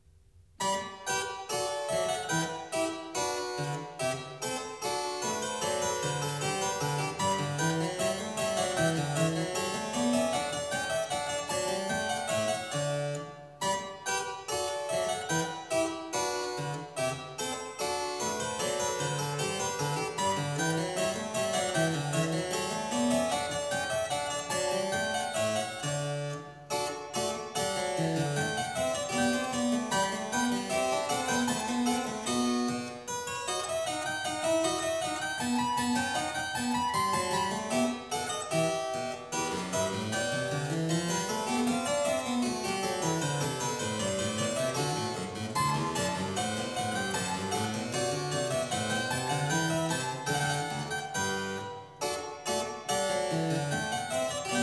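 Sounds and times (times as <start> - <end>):
gavotte in G major: 0.6 - 54.6.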